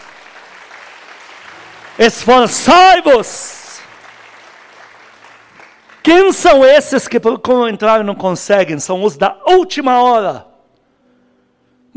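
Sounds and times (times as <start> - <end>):
audience applause: 0.0 - 6.4
speech: 2.0 - 3.6, 6.0 - 10.5.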